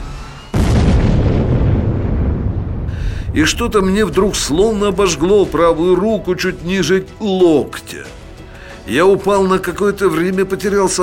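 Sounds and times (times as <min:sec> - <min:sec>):
ammunition rack detonating: 0:00.1 - 0:06.0
speech: 0:03.4 - 0:08.2, 0:08.8 - 0:11.0.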